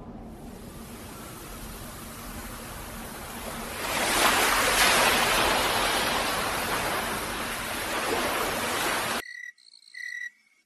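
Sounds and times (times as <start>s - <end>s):
crashing ocean waves: 0.4s - 9.2s.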